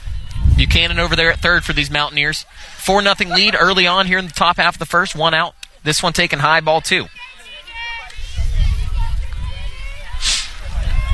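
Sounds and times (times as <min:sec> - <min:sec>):
wind buffeting the microphone across an outdoor softball field: 0:00.0 - 0:02.5, 0:08.0 - 0:11.1
indistinct voices and crowd babble at a softball game: 0:00.0 - 0:11.1
speech: 0:00.6 - 0:07.2
laughter: 0:02.9 - 0:04.3.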